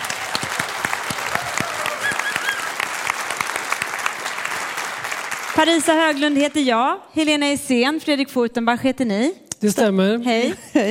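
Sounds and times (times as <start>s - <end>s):
audience applause: 0.0s - 6.6s
speech: 5.6s - 10.8s.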